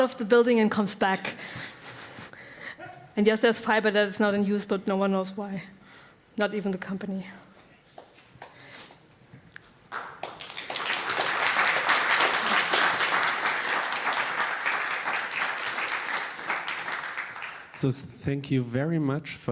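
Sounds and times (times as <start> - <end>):
speech: 0.0 - 1.8, 3.2 - 5.8, 6.4 - 7.5, 17.8 - 19.5
audience applause: 9.9 - 17.9.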